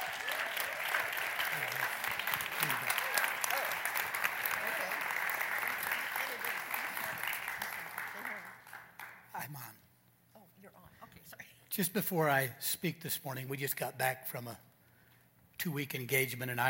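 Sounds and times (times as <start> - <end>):
audience applause welcoming speaker to stage: 0.0 - 9.3
speech: 11.8 - 14.6, 15.6 - 16.6.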